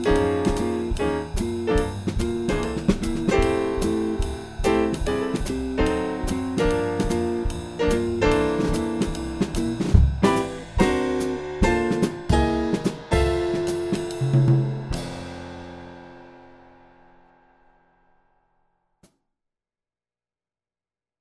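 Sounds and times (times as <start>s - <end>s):
swing etude rhythm section with muted bass: 0.0s - 16.1s.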